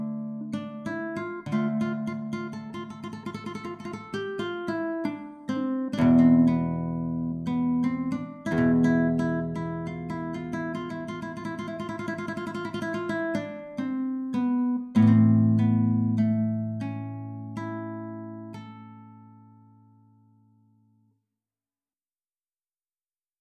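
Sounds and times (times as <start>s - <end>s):
Spanish guitar improvisation: 0.0s - 20.7s.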